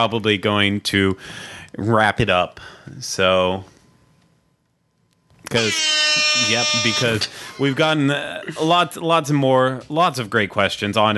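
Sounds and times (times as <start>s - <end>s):
speech: 0.0s - 3.7s, 5.5s - 11.1s
air horn blast: 5.5s - 7.8s.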